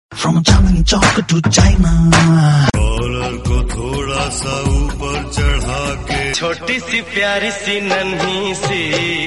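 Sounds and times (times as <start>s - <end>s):
Hindi remix music: 0.1s - 9.2s.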